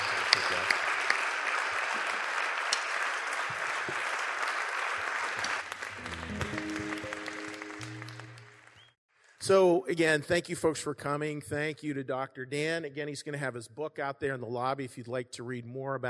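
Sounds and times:
audience applause: 0.0s - 9.0s
speech: 9.5s - 16.0s.

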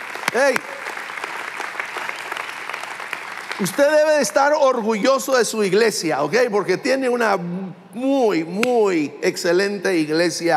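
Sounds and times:
audience applauding: 0.0s - 4.6s
speech: 0.3s - 0.8s, 3.6s - 10.5s.

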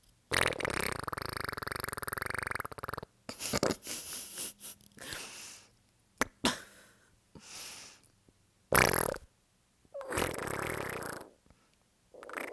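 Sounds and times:
mouth-made fart noises: 0.3s - 3.9s, 8.7s - 9.3s, 10.0s - 11.4s, 12.2s - 12.5s.

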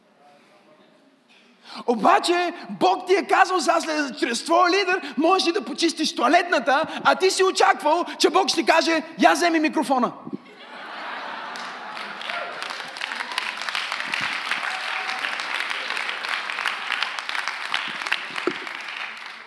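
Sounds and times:
speech: 1.8s - 10.3s
laughter: 10.4s - 13.1s
audience applause: 11.2s - 19.4s.

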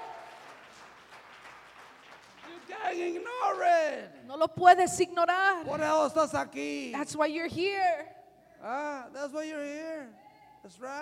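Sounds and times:
audience applause: 0.0s - 3.5s
speech: 2.7s - 11.0s.

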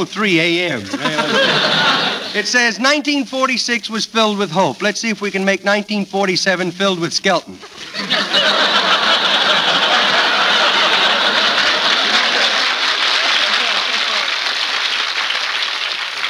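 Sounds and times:
speech: 0.0s - 8.6s
laughter: 0.6s - 2.8s, 7.6s - 14.6s
studio audience applause: 8.3s - 16.2s.

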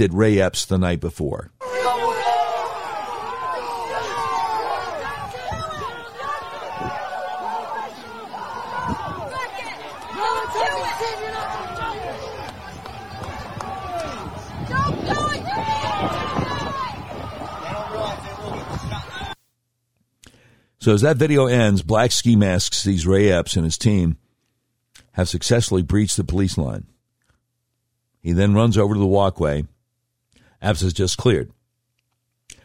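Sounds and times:
speech: 0.0s - 1.6s, 20.8s - 24.2s, 25.2s - 27.0s, 28.2s - 29.7s, 30.6s - 31.6s
crowd hubbub of shouting and talking voices in protest video: 1.6s - 19.4s.

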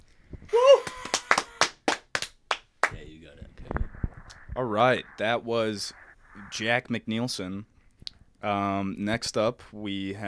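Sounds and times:
short vocal whoop: 0.5s - 1.7s
sharp irregular hand claps: 0.8s - 3.0s
speech: 4.6s - 7.7s, 8.4s - 10.2s.

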